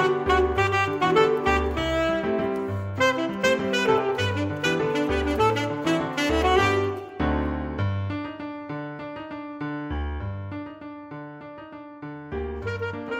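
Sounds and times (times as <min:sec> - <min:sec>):
alto saxophone playing Latin rhythms: 0:00.0 - 0:07.5, 0:12.5 - 0:13.1
piano: 0:00.0 - 0:13.1.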